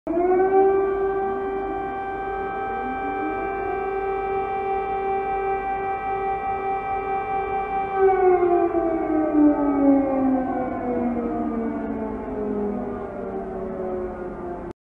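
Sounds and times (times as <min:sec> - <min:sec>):
siren sounding in Kiev: 0:00.1 - 0:14.8.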